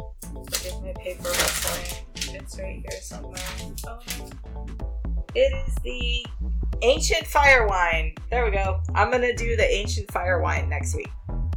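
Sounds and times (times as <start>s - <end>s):
sheets of paper rustling as someone searches through them: 0.2s - 4.3s
speech: 0.8s - 11.2s.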